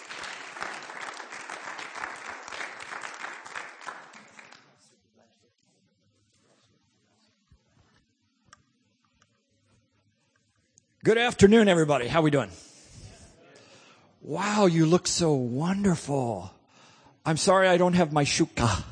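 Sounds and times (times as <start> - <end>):
audience applause welcoming a pastor: 0.0 - 4.9
speech: 11.0 - 12.6, 14.3 - 16.6, 17.2 - 18.9.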